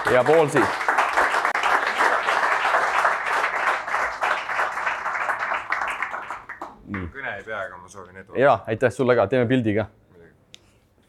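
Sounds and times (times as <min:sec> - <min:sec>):
audience applause: 0:00.0 - 0:07.2
speech: 0:00.1 - 0:00.8, 0:07.4 - 0:10.0.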